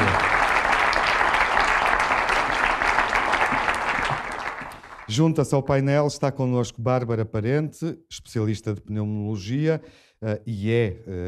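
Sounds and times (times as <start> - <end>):
audience applause: 0.0 - 5.2
speech: 5.1 - 11.2.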